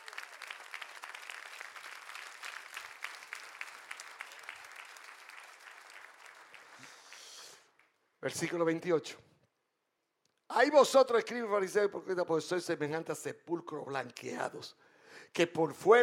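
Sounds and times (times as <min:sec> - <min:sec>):
audience applause: 0:00.0 - 0:07.9
speech: 0:08.2 - 0:09.2, 0:10.6 - 0:16.0.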